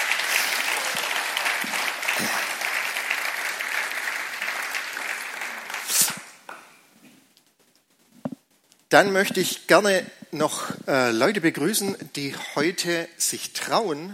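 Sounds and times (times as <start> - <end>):
applause: 0.0 - 6.6
speech: 8.9 - 14.1.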